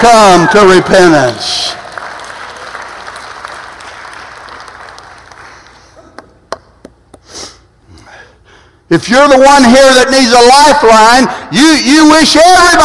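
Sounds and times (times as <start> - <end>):
speech: 0.0 - 1.8, 8.9 - 12.8
audience clapping: 0.0 - 7.1.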